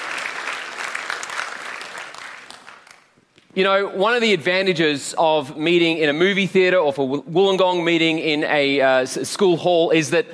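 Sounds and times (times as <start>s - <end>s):
audience applause: 0.0s - 3.1s
speech: 3.6s - 10.3s.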